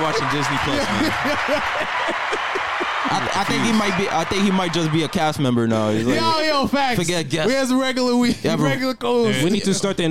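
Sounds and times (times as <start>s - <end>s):
applause sound effect: 0.0s - 5.5s
laughter: 0.0s - 7.0s
speech: 0.2s - 10.0s.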